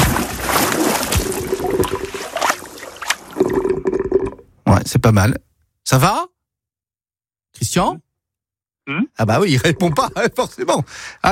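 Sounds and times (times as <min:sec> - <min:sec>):
water splashing as someone dives into icy water: 0:00.0 - 0:04.4
speech: 0:04.8 - 0:06.3, 0:07.6 - 0:08.0, 0:08.8 - 0:11.2.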